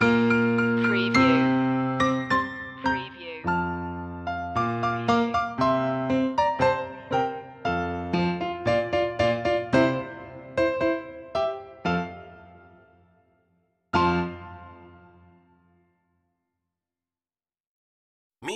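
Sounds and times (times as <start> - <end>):
piano loop: 0.0 - 12.6.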